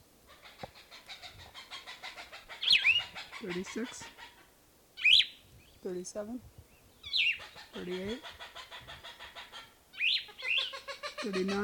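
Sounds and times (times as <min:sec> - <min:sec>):
excited Cooper's hawk calling: 0:00.3 - 0:05.4, 0:07.0 - 0:11.6
speech: 0:03.4 - 0:04.1, 0:05.8 - 0:06.6, 0:07.7 - 0:08.4, 0:11.2 - 0:11.6.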